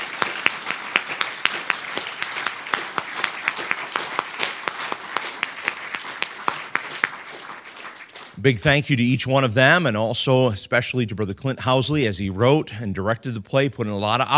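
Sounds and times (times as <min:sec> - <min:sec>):
audience round of applause: 0:00.0 - 0:08.8
speech: 0:08.4 - 0:14.3.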